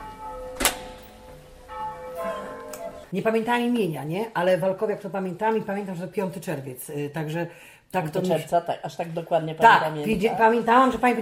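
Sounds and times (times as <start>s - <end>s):
church bells ringing: 0.0s - 3.2s
speech: 3.1s - 11.1s.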